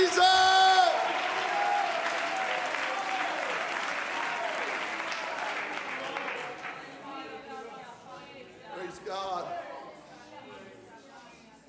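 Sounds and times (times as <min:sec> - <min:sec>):
audience clapping hands: 0:00.0 - 0:07.0.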